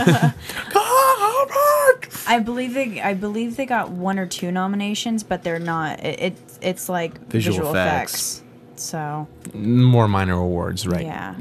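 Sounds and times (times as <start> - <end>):
speech: 0.0 - 0.8, 2.3 - 11.4
person wailing imitating screaming fans: 0.6 - 2.0, 7.4 - 8.0.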